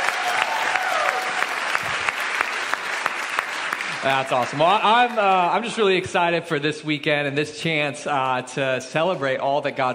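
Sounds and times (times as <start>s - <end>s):
audience applause: 0.0s - 5.8s
speech: 4.0s - 9.9s.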